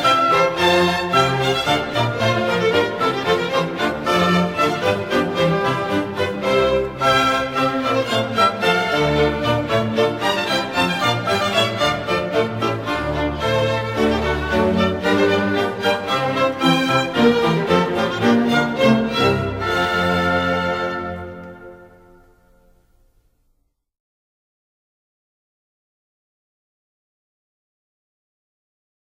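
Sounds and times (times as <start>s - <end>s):
baroque hornpipe: 0.0s - 22.5s.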